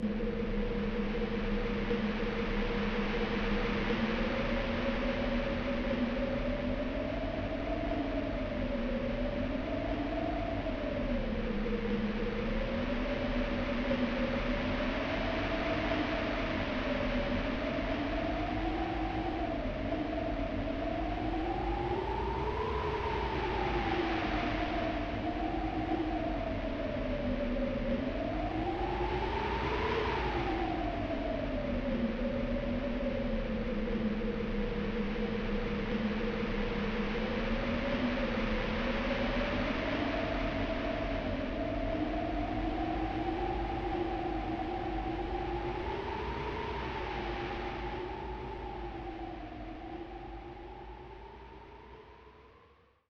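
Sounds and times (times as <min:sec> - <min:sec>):
wind: 0:00.0 - 0:53.0.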